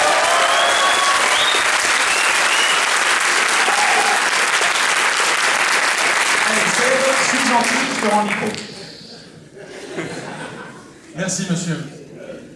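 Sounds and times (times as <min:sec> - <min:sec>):
audience applause: 0:00.0 - 0:09.0
speech: 0:07.5 - 0:08.7, 0:11.2 - 0:12.0
laughter: 0:08.8 - 0:11.2.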